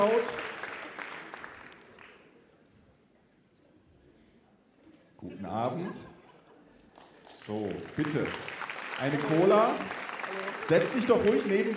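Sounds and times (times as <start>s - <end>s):
speech: 0.0s - 0.5s, 5.2s - 6.2s, 7.4s - 11.7s
audience applause: 0.0s - 2.3s, 6.9s - 11.7s
laughter: 5.2s - 7.0s.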